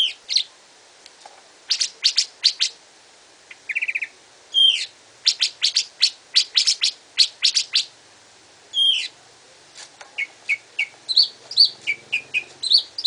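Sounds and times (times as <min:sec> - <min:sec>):
Greater green leafbird cage bird singing: 0:00.0 - 0:00.5, 0:01.7 - 0:02.8, 0:03.5 - 0:07.9, 0:08.7 - 0:09.2, 0:10.2 - 0:13.0.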